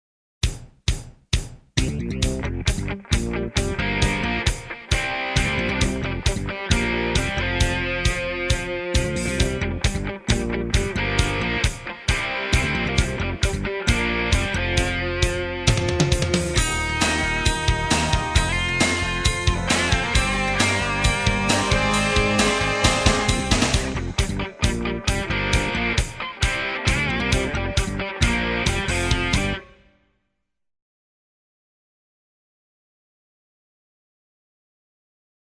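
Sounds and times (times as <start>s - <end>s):
intro music: 1.8s - 29.9s.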